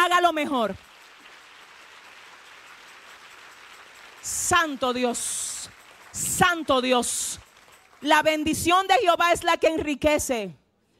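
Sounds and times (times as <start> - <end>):
speech: 0.2 - 0.9, 4.2 - 7.4, 8.0 - 10.6
audience applause: 0.8 - 8.1.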